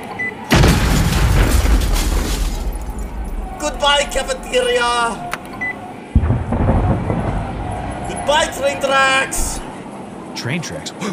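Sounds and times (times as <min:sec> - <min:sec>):
building explosion: 0:00.5 - 0:05.0, 0:06.1 - 0:08.2
speech: 0:03.8 - 0:05.3, 0:08.3 - 0:09.6, 0:10.4 - 0:11.1.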